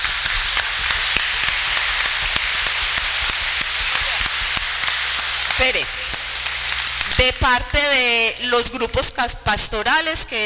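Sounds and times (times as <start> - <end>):
audience applause: 0.0 - 7.4
speech: 5.6 - 6.1, 7.2 - 10.4.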